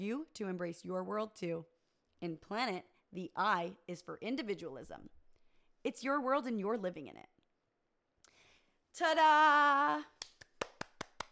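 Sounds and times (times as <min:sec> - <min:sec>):
speech: 0:00.0 - 0:05.2, 0:05.8 - 0:07.4, 0:09.0 - 0:10.2
person clapping hands: 0:10.2 - 0:11.3.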